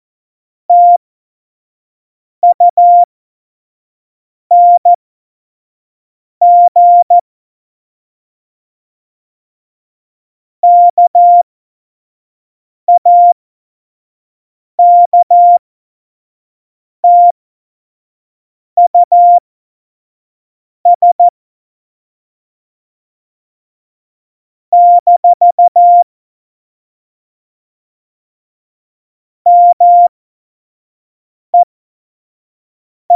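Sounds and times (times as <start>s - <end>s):
Morse code course beeps: 0.7s - 1.0s, 2.4s - 3.1s, 4.5s - 4.9s, 6.4s - 7.2s, 10.6s - 11.4s, 12.9s - 13.4s, 14.8s - 15.6s, 17.0s - 17.3s, 18.9s - 19.4s, 21.0s - 21.3s, 24.8s - 26.0s, 29.5s - 30.1s.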